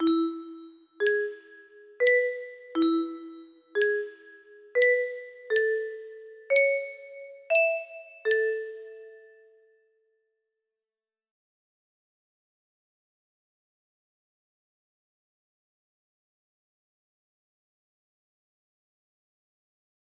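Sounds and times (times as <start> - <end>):
music box melody: 0.0 - 9.5.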